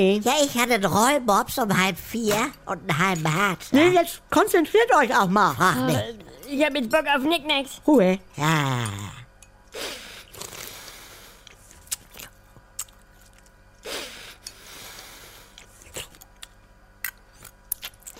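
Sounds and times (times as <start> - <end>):
speech: 0.0 - 9.2
wet slurping: 9.8 - 16.3.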